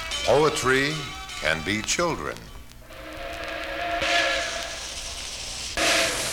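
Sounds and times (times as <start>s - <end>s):
speech: 0.3s - 2.5s
passing steam train venting steam: 2.8s - 6.3s.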